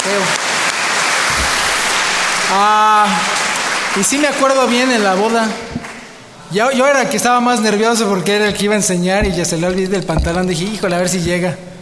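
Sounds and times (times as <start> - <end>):
applause: 0.0 - 6.1
speech: 2.5 - 3.4, 4.0 - 5.8, 6.5 - 11.7.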